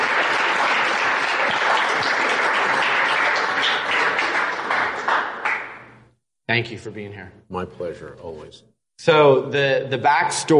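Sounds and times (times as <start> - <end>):
studio audience applause: 0.0 - 6.0
speech: 6.5 - 10.5.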